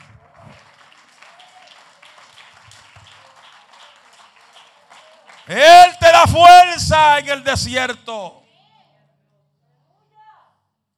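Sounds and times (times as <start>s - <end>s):
audience applause: 0.0s - 6.2s
speech: 5.5s - 8.4s.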